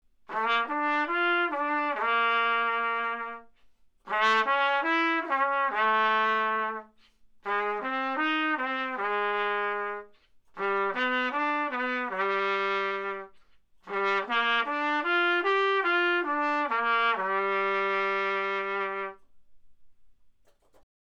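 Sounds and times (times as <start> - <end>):
trumpet: 0.2 - 19.5.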